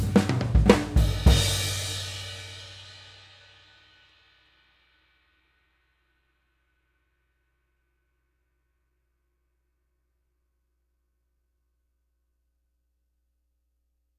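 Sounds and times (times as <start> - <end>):
18 inch K Istanbul cymbal: 0.0 - 6.4.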